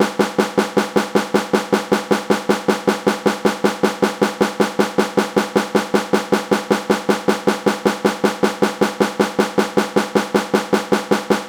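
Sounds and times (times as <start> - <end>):
snare drum: 0.0 - 11.4.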